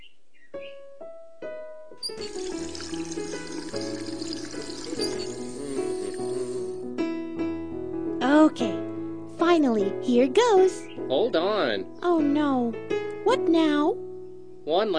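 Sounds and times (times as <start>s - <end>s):
music: 0.5s - 14.9s
water running from a tap as a carrot is washed: 2.0s - 6.7s
speech: 9.6s - 14.0s, 14.7s - 14.9s.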